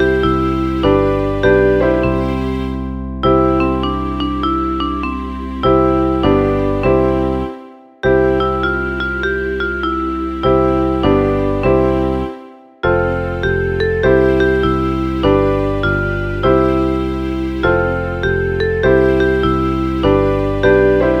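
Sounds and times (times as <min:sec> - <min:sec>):
piano ensemble: 0:00.0 - 0:21.1.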